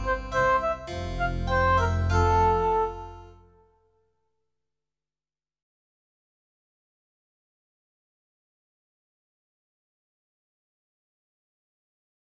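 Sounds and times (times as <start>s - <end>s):
instrumental music: 0.0s - 4.0s.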